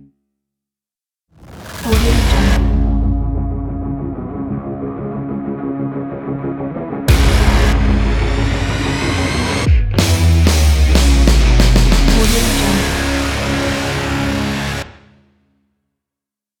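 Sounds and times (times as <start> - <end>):
modern pumped rock music: 1.9 - 14.9.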